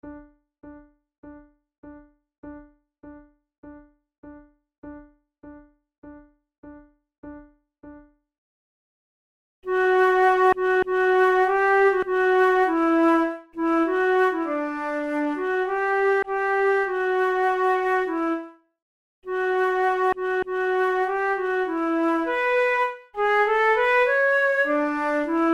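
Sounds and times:
flute duet: 0:09.7 - 0:18.5, 0:19.3 - 0:25.5.

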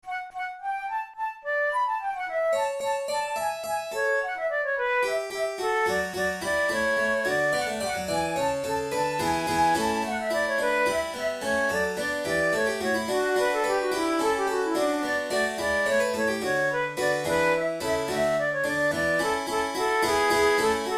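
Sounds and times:
flute playing allegro: 0:00.0 - 0:20.9.

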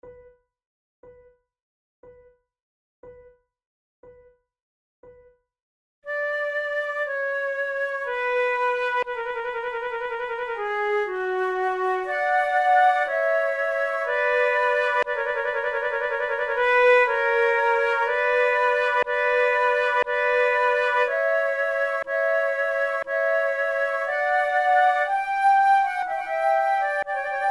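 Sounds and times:
slow trio sonata with flute: 0:06.1 - 0:27.5.

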